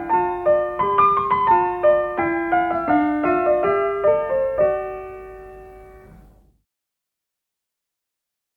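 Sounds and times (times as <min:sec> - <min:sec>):
small gavotte piece: 0:00.0 - 0:06.4.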